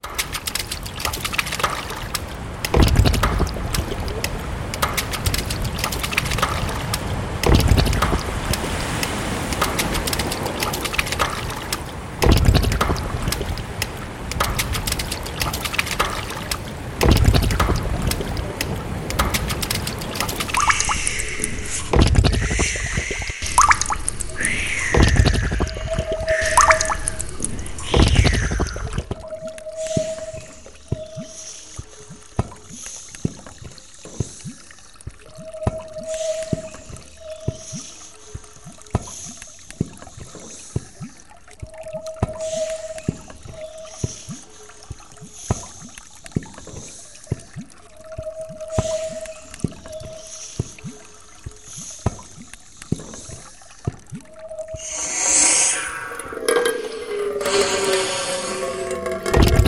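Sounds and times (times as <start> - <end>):
water sounds: 0.0 - 59.6.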